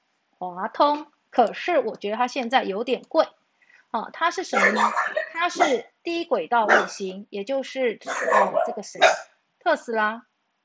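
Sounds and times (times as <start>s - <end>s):
speech: 0.4s - 10.3s
dog barking: 4.6s - 5.8s, 6.7s - 7.0s, 8.1s - 9.3s.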